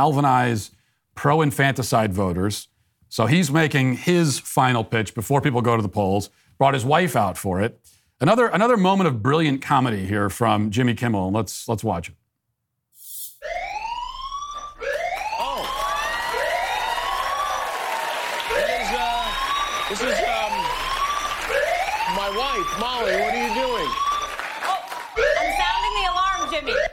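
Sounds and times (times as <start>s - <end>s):
speech: 0.0s - 12.2s, 19.9s - 20.2s
alarm siren sounding: 13.4s - 26.9s.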